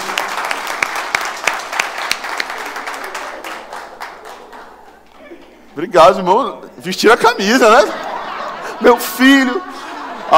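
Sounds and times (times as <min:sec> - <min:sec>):
audience applause: 0:00.0 - 0:05.2
speech: 0:05.8 - 0:08.0, 0:08.8 - 0:09.7
laughter: 0:07.2 - 0:10.3.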